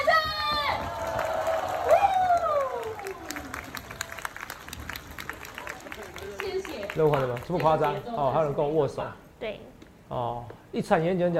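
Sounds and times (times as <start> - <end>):
audience cheering: 0.0 - 6.8
audience applauding: 0.0 - 8.1
speech: 7.0 - 11.3.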